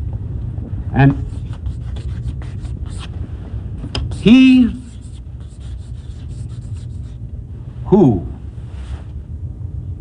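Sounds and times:
speech: 0.9 - 1.4, 4.2 - 4.8
lecturer writing on the board: 1.1 - 3.2, 3.9 - 7.2.

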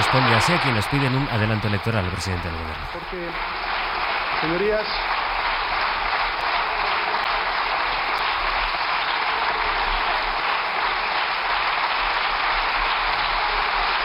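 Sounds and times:
parliament deputies and government members clapping: 0.0 - 14.0
speech: 0.1 - 3.6, 4.4 - 5.1.

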